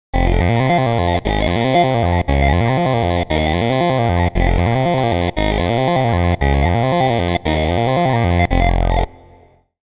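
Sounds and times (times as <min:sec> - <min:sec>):
lead melody: 0:00.2 - 0:09.2.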